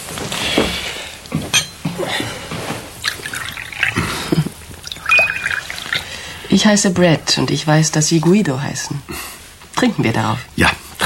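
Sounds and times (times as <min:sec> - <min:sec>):
faint clinks of glass: 0:01.5 - 0:01.8, 0:05.0 - 0:05.8
wine being poured into a glass: 0:03.0 - 0:06.5
speech: 0:06.6 - 0:10.8.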